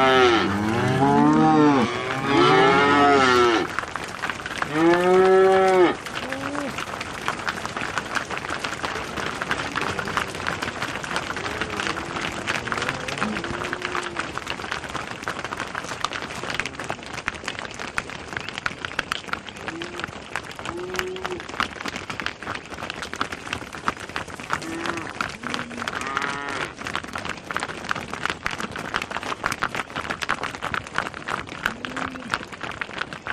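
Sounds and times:
cows mooing: 0.0 - 3.7, 4.6 - 6.8, 9.5 - 14.4, 20.7 - 21.4, 24.6 - 26.8, 31.7 - 32.4
cows trotting: 0.0 - 33.3.

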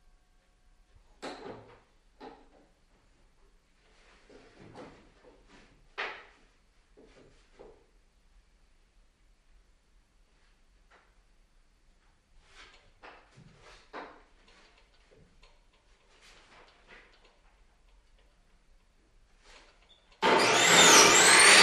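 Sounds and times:
circular saw at large construction site: 20.2 - 21.6.

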